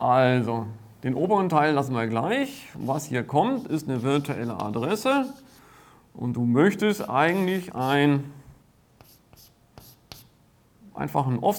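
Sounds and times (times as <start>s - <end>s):
speech: 0.0s - 5.5s, 6.2s - 8.4s, 11.0s - 11.5s
handwriting during a lecture: 2.8s - 5.6s, 7.0s - 8.0s, 9.0s - 10.4s.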